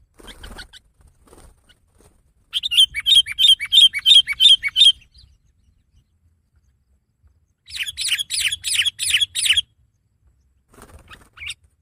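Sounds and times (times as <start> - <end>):
sooty-headed bulbul singing: 2.5 - 10.6.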